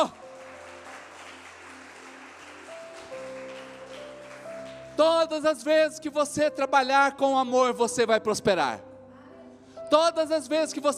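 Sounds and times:
audience applause: 0.0 - 5.0
speech: 5.0 - 8.9, 9.9 - 10.9.

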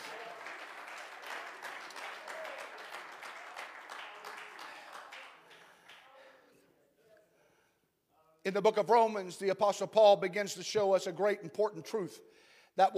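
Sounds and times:
audience clapping hands: 0.0 - 6.3
speech: 8.5 - 12.9.

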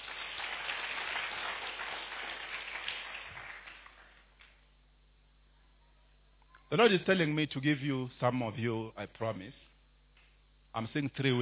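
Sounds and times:
audience clapping: 0.0 - 4.6
speech: 6.7 - 9.7, 10.8 - 11.3.

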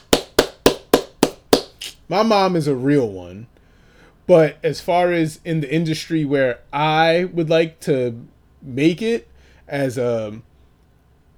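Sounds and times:
hand claps: 0.0 - 2.0
speech: 2.1 - 3.6, 4.3 - 10.5.

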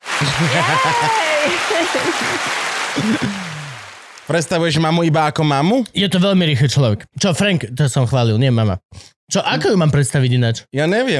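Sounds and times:
audience applause: 0.0 - 4.5
laughter: 0.1 - 4.0
speech: 0.2 - 3.6, 4.3 - 11.1.

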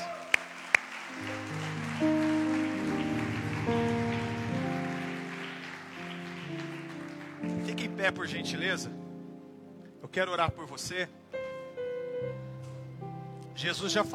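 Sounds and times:
audience applauding: 0.0 - 8.4
sustained keyboard chords: 0.0 - 14.1
speech: 8.0 - 9.0, 10.1 - 11.2, 13.6 - 14.1.

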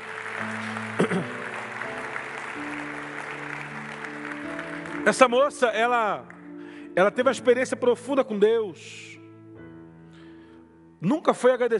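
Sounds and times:
audience applauding loudly: 0.0 - 5.7
sustained keyboard chords: 0.0 - 11.2
speech: 5.0 - 6.3, 7.0 - 9.1, 11.0 - 11.7.

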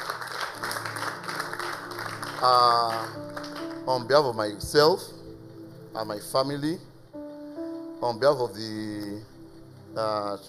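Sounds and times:
audience clapping: 0.0 - 4.1
speech: 2.4 - 3.2, 3.9 - 5.2, 6.0 - 6.9, 8.0 - 9.3, 10.0 - 10.4.

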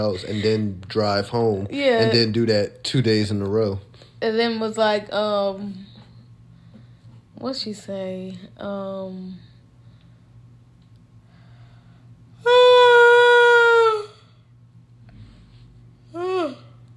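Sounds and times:
speech: 0.0 - 5.9, 7.4 - 9.5
person yawning: 12.4 - 14.3, 16.1 - 16.8.

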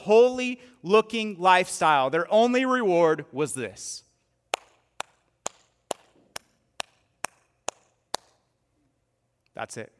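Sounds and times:
speech: 0.0 - 4.0, 9.6 - 9.9
hand clap: 4.5 - 8.5.

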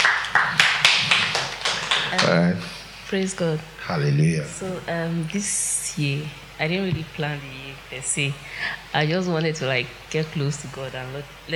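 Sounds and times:
hands clapping: 0.0 - 2.5
speech: 2.3 - 11.5.

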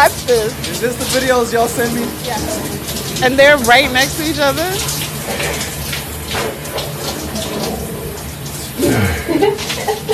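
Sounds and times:
person splashing and scrubbing while washing in a shower: 0.0 - 10.1
running water in a shower: 0.0 - 10.1
speech: 0.1 - 6.6, 8.8 - 10.1
laughter: 8.8 - 10.1.

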